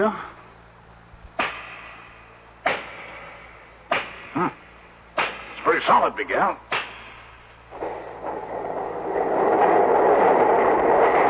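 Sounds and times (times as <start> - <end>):
speech: 0.0 - 0.3, 4.4 - 4.6, 5.8 - 6.7
low droning hum: 0.0 - 11.2
heavy doors grinding mechanically open: 7.7 - 11.2.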